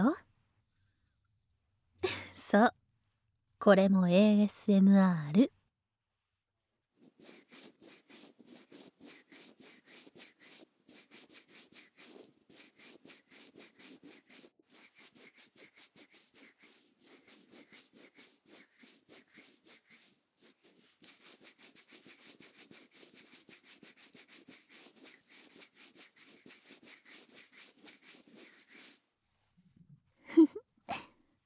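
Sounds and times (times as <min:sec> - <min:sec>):
speech: 0:02.5 - 0:02.8, 0:03.6 - 0:05.6
fingers rubbed together at a dummy head microphone for ASMR: 0:07.0 - 0:29.0.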